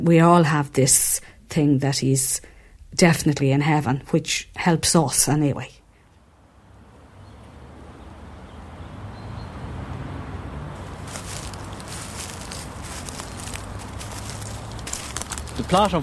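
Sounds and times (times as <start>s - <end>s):
speech: 0.0s - 5.8s, 15.7s - 16.0s
steady fairly loud noise: 0.0s - 16.0s
footsteps crunching along a pathway beside a burial plot: 10.7s - 16.0s.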